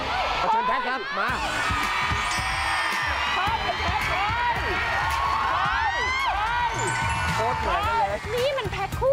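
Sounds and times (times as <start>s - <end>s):
crowd cheering and shouting: 0.0s - 9.0s
speech: 1.0s - 1.8s.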